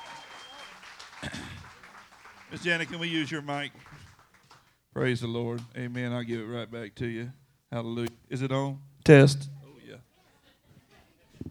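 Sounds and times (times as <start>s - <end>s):
audience applause for a band: 0.0s - 4.8s
speech: 2.5s - 4.0s, 5.0s - 9.5s.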